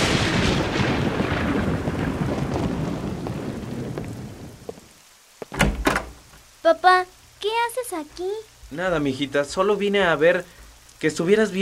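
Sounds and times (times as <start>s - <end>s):
deep rolling thunder rumble: 0.0s - 4.9s
steady heavy rain: 0.0s - 11.6s
speech: 6.7s - 11.6s.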